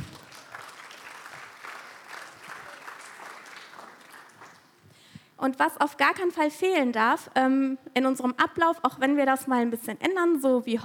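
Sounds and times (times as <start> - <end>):
audience applause: 0.0 - 4.7
speech: 5.4 - 10.8.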